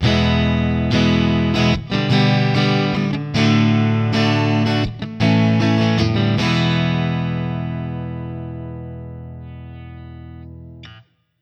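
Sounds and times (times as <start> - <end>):
open guitar: 0.0 - 11.4.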